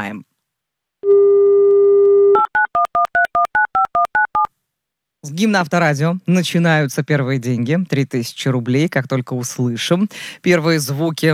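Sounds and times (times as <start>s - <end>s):
speech: 0.0s - 0.3s, 5.2s - 11.3s
telephone dial tone: 1.0s - 4.5s.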